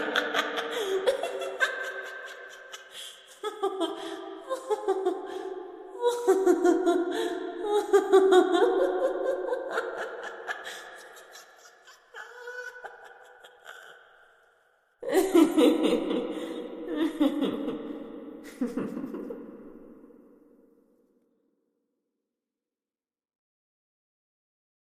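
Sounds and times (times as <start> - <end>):
scary possessed nun laughing: 0.0 - 14.4, 15.0 - 19.9.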